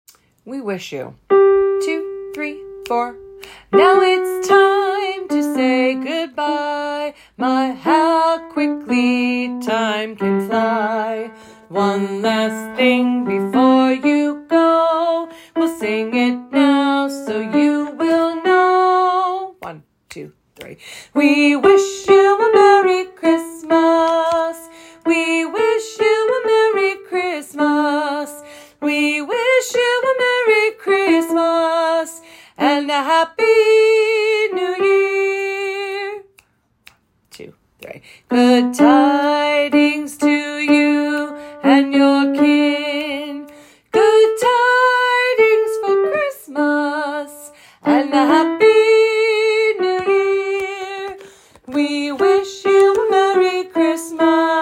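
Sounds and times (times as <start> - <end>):
soprano singing a carol: 1.3 - 36.3, 37.4 - 54.6.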